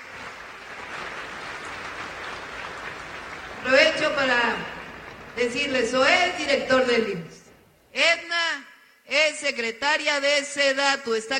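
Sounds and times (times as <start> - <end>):
applause: 0.0 - 5.8
speech: 3.6 - 4.7, 5.4 - 7.4, 8.0 - 8.2, 9.2 - 11.3.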